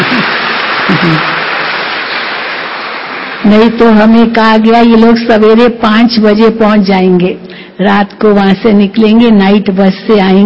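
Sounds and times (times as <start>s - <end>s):
crowd clapping: 0.0s - 4.0s
speech: 1.0s - 1.4s, 3.5s - 10.4s.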